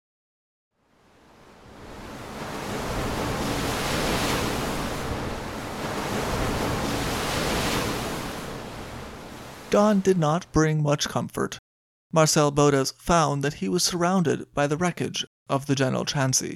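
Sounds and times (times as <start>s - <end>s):
wind at sea: 0.8s - 9.8s
storm waves roaring at sea: 1.0s - 10.3s
speech: 9.8s - 16.5s.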